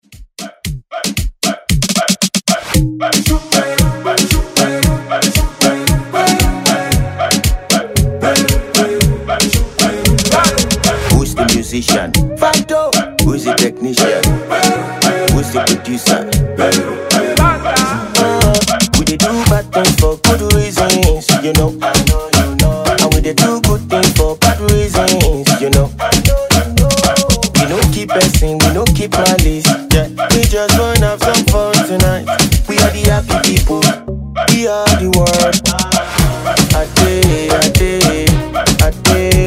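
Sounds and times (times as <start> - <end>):
Afro reggaeton music: 0.0 - 39.4.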